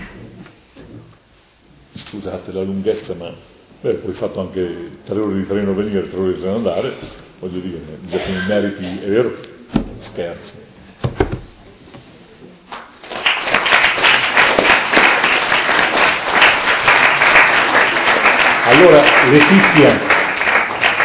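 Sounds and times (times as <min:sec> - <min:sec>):
speech: 0:02.1 - 0:10.7, 0:18.7 - 0:20.1
audience applause: 0:13.0 - 0:21.0.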